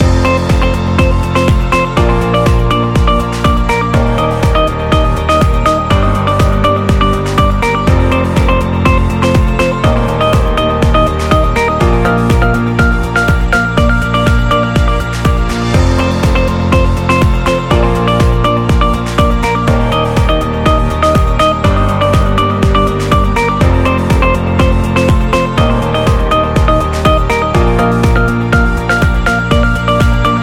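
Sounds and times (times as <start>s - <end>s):
upbeat corporate music loop: 0.0s - 30.4s.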